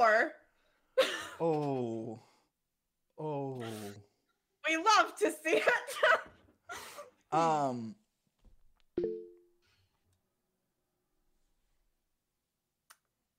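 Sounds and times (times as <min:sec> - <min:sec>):
speech: 0:00.0 - 0:00.4, 0:01.0 - 0:02.3, 0:04.7 - 0:08.0
gasping breathy vocal sounds: 0:03.4 - 0:04.1
stream chat notification beep, low two-note tone: 0:09.0 - 0:09.5.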